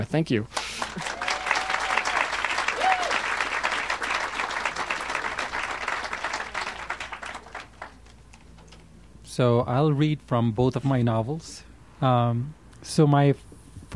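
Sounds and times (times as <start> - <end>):
speech: 0.0 - 1.1, 9.4 - 13.9
warm round of applause: 0.5 - 8.4.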